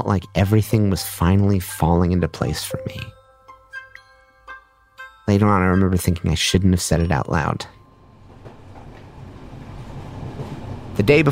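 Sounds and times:
speech: 0.0 - 3.2, 5.3 - 7.8, 11.0 - 11.3
train clattering along rails: 8.0 - 11.3
faint knocks: 8.2 - 10.9.

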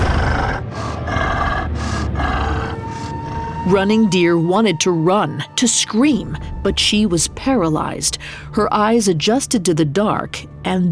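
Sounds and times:
low growling grunts from a large beast: 0.0 - 3.4
heavy rasping breaths from a large beast in the dark: 0.0 - 3.7
speech: 3.6 - 10.9.

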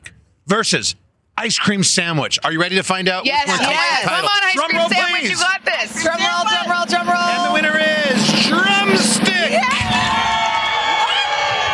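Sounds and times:
speech: 0.5 - 10.5
crowd cheering and shouting: 3.4 - 11.7
high yells: 3.5 - 11.7.

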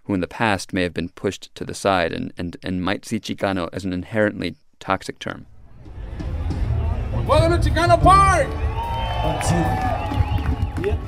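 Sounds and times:
speech: 0.1 - 5.5, 7.2 - 10.1, 10.8 - 11.0
crowd murmur at the 49th annual Chicano Park Day gathering, San Diego: 5.7 - 7.3.

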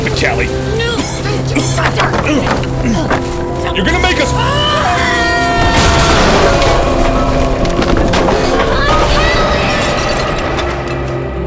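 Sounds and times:
speech: 0.2 - 5.3
stage collapsing crash: 5.6 - 11.3.

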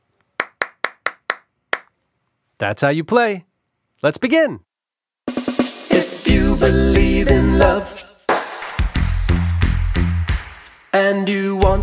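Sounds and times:
hands clapping a word rhythm: 0.3 - 2.0, 7.3 - 11.0
speech: 2.6 - 4.7, 6.6 - 8.1, 11.0 - 11.8.

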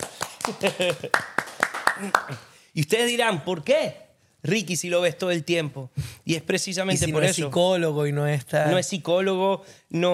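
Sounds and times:
audience applause: 0.0 - 2.4
speech: 0.5 - 1.3, 2.0 - 10.1.

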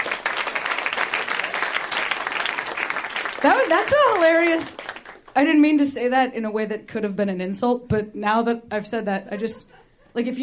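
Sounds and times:
audience applause: 0.0 - 5.4
speech: 3.4 - 4.8, 5.4 - 10.4.

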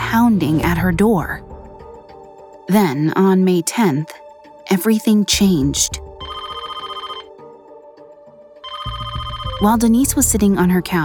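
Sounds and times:
speech: 0.1 - 1.4, 2.7 - 6.0, 9.6 - 11.0
telephone ringing: 6.2 - 7.3, 8.6 - 9.8.

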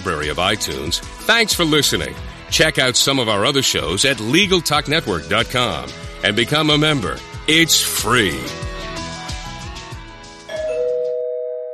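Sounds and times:
speech: 0.0 - 8.6
doorbell chime: 10.5 - 11.7.

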